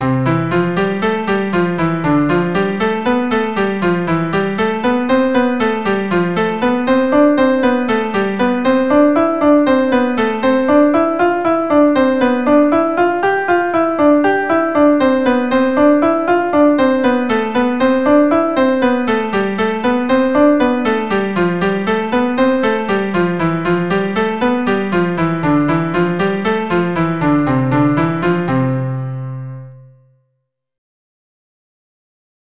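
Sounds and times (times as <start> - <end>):
keyboard playing: 0.0 - 29.8.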